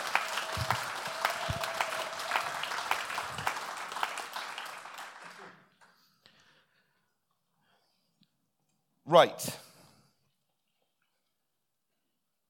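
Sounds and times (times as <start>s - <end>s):
round of applause: 0.0s - 6.2s
speech: 9.2s - 9.6s.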